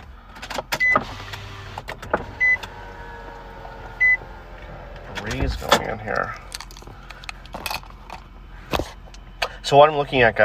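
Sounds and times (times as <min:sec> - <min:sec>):
car power window rolling down: 0:00.8 - 0:05.8
speech: 0:05.5 - 0:06.4, 0:09.7 - 0:10.4.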